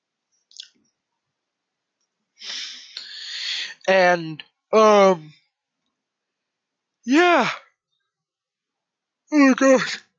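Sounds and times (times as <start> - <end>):
person imitating a sharp breath taken while singing: 2.4 - 3.8
speech: 3.9 - 5.4, 7.1 - 7.6, 9.3 - 10.0.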